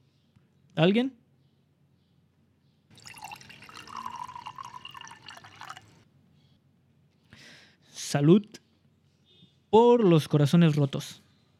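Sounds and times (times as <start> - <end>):
speech: 0.8 - 1.2, 8.1 - 8.6, 9.7 - 11.2
drink pouring into a glass: 2.9 - 6.0.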